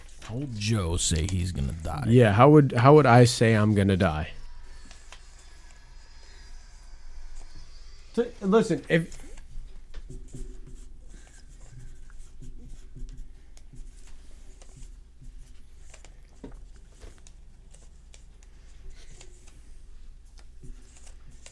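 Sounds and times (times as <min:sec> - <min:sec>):
speech: 0:00.3 - 0:04.4, 0:08.2 - 0:09.2
pens scratching on paper as several people write: 0:04.4 - 0:21.4.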